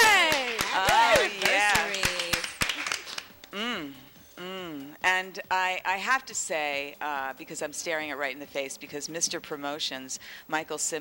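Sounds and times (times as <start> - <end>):
applause: 0.0 - 3.4
speech: 5.4 - 10.9.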